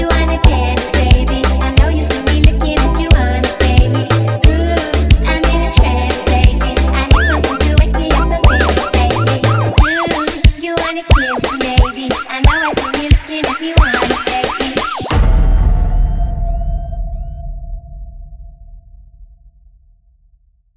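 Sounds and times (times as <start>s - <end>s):
techno version: 0.0s - 16.4s.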